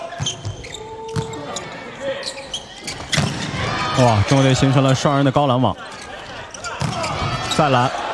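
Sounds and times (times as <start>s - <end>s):
volleyball bouncing on the court before a serve: 0.1s - 1.5s, 2.8s - 3.7s, 6.6s - 7.5s
commentator talking: 3.9s - 5.8s
speech: 4.0s - 5.9s, 7.6s - 8.0s.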